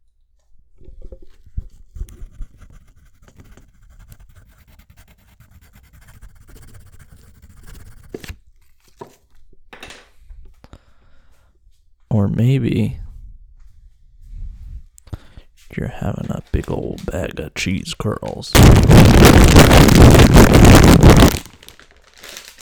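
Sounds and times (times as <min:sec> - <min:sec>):
pen scratching on paper: 0:02.2 - 0:08.3
speech: 0:12.1 - 0:13.0, 0:15.8 - 0:21.5.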